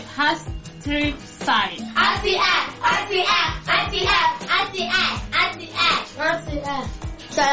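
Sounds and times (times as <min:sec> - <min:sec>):
speech: 0:00.2 - 0:07.5
low beat: 0:00.8 - 0:05.6
rhythmic hand clapping: 0:02.0 - 0:06.1
children's voices: 0:02.0 - 0:07.5.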